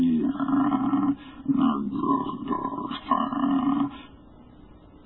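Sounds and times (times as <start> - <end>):
hideous rasping croaking roar: 0.2 - 4.1.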